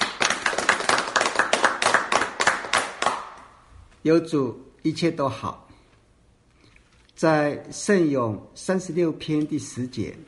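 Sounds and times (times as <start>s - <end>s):
audience clapping: 0.0s - 3.6s
speech: 4.0s - 5.6s, 7.2s - 10.2s.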